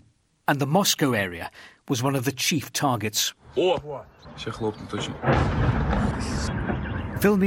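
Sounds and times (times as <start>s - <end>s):
speech: 0.5s - 7.4s
drone strike explosion on apartment block outside Moscow: 5.0s - 7.2s.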